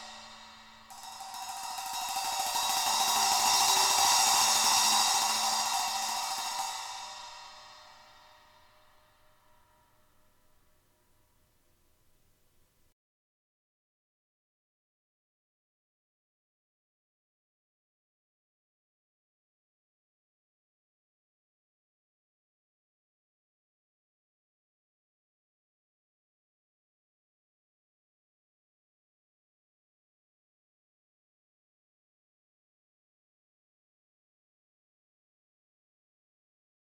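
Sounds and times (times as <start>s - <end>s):
Classic Splash 12 splash cymbal: 0.0s - 10.7s.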